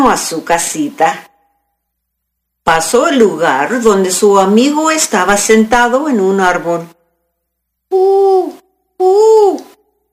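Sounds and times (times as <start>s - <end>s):
speech: 0.0s - 1.3s, 2.7s - 7.0s, 7.9s - 9.7s
owl hooting: 7.9s - 9.8s.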